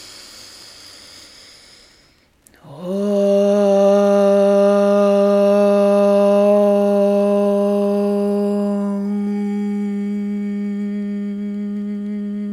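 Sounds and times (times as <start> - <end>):
chanting a mantra: 2.5 - 12.5.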